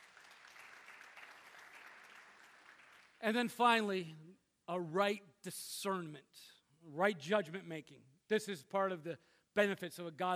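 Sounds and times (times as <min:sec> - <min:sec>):
audience clapping hands: 0:00.0 - 0:03.9
speech: 0:03.2 - 0:10.3.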